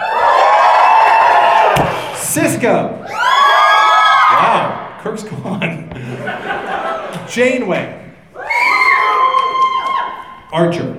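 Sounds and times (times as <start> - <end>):
audience whooping: 0.0 - 2.2, 3.1 - 4.9, 8.4 - 10.4
speech: 2.3 - 3.2, 4.3 - 6.2, 7.3 - 8.0, 10.5 - 10.9
laughter: 5.9 - 7.4.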